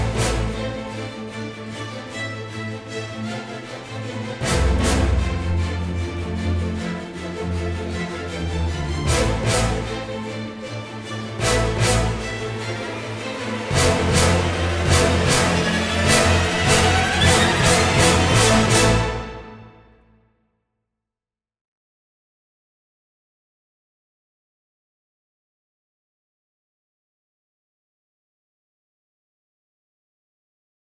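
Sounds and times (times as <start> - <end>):
strings: 0.0 - 20.0
brass: 0.0 - 20.2.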